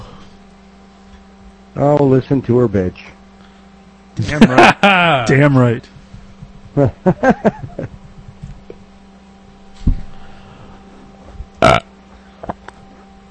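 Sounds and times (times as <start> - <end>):
speech: 1.8 - 3.1, 4.1 - 5.9, 6.7 - 8.0
laughter: 4.2 - 5.4, 6.7 - 8.1
burp: 11.6 - 11.9.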